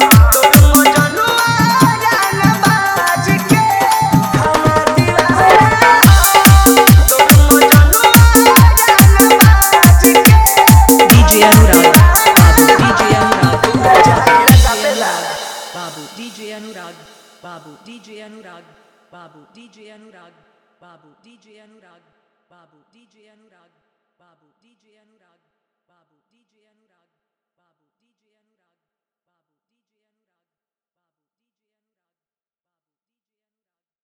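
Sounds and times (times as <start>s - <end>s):
Bhojpuri hard bass dance mix: 0.0s - 16.4s.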